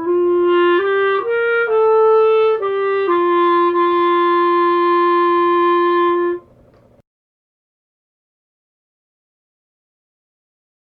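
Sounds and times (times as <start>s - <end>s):
clarinet playing andante: 0.0s - 6.5s.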